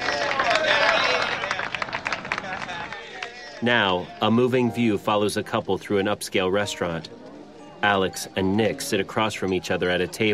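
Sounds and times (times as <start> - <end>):
scattered sharp claps: 0.0 - 3.6
group of workers cheering and whooping: 0.0 - 4.2
speech: 3.6 - 7.2, 7.8 - 10.3.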